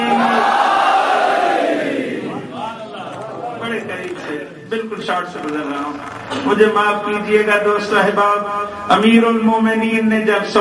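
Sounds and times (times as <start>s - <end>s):
crowd at a religious majlis shouting a slogan: 0.0s - 2.7s
speech: 5.1s - 10.5s.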